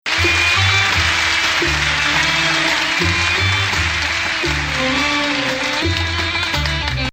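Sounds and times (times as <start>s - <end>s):
music in Nahawand maqam: 0.1s - 7.1s.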